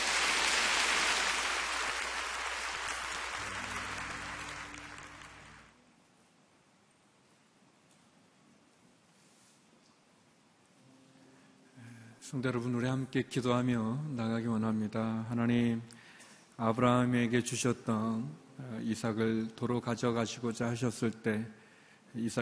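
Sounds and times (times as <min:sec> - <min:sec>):
audience applauding: 0:00.0 - 0:05.7
speech: 0:12.3 - 0:16.0, 0:16.6 - 0:22.4.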